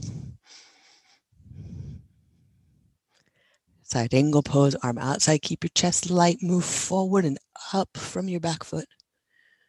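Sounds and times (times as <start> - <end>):
deep breathing during a yoga side angle pose: 0.0 - 3.7
speech: 3.9 - 9.0.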